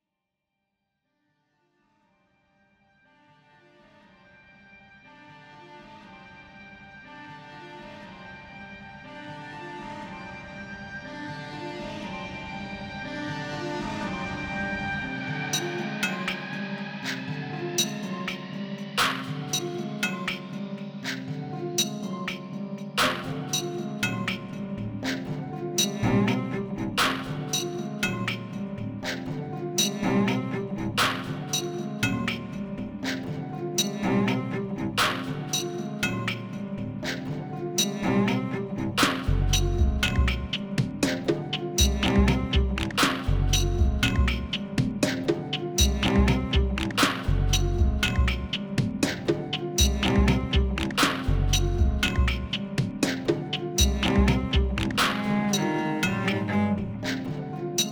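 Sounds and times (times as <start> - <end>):
cello: 2.9 - 57.9.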